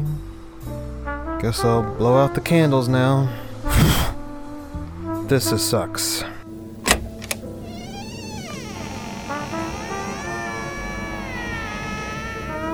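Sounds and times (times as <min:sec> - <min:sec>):
speech: 0:01.4 - 0:03.9, 0:05.3 - 0:06.3
door opening: 0:06.8 - 0:12.7.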